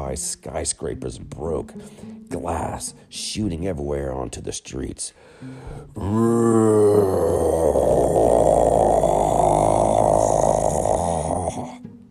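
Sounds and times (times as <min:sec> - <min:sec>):
speech: 0:00.1 - 0:08.5
giant beast roaring: 0:06.0 - 0:11.8.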